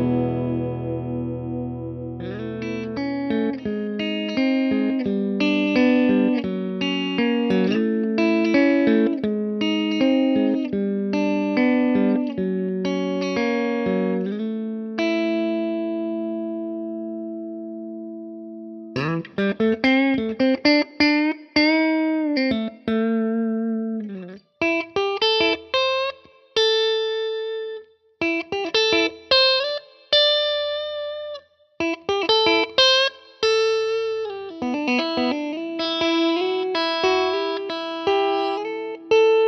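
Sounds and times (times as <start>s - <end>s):
electric guitar on neck pickup: 0.0s - 39.4s.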